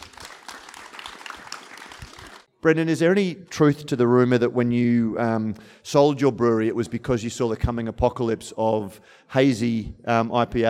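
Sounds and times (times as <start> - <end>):
audience applause: 0.0 - 2.5
speech: 2.6 - 10.6.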